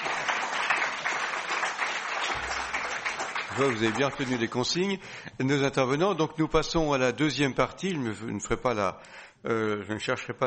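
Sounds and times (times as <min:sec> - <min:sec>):
audience applause: 0:00.0 - 0:04.6
speech: 0:03.6 - 0:10.4.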